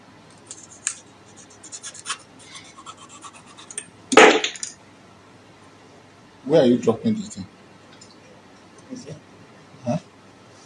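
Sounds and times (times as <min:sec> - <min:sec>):
scratchy rasping strokes cutting something open from the top: 0:00.5 - 0:03.8
speech: 0:06.5 - 0:07.6.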